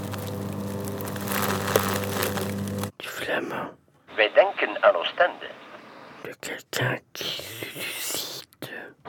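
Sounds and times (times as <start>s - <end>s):
leaf shredder machine: 0.0s - 2.9s
speech: 3.4s - 5.5s, 6.2s - 7.4s.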